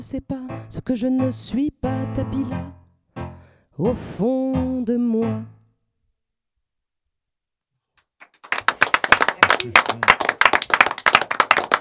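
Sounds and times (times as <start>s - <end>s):
speech: 0.0s - 2.8s, 3.8s - 5.6s, 9.6s - 10.1s
audience applause: 8.2s - 11.8s.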